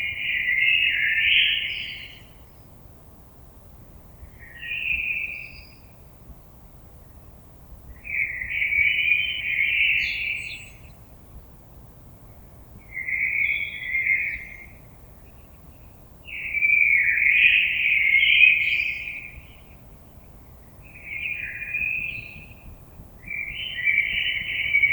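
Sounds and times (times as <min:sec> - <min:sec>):
birds: 0:00.0 - 0:02.8, 0:07.0 - 0:24.9.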